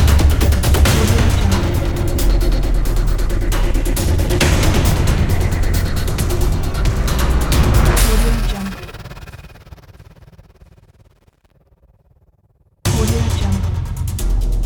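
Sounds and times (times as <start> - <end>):
epic tribal hybrid drums: 0.0 - 9.6, 12.9 - 14.6.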